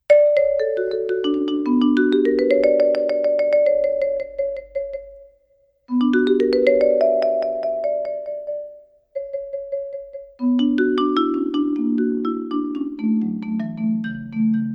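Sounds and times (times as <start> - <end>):
marimba playing a coda: 0.1 - 5.2, 5.9 - 14.7.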